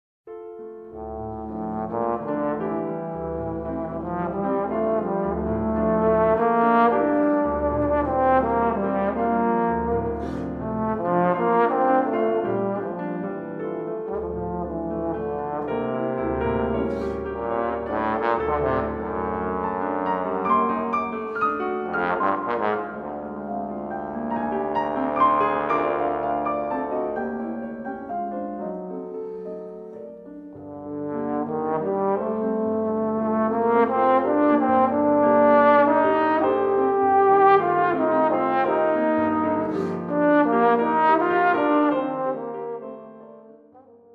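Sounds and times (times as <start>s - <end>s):
piano: 0.3s - 44.1s
cello: 1.0s - 43.0s.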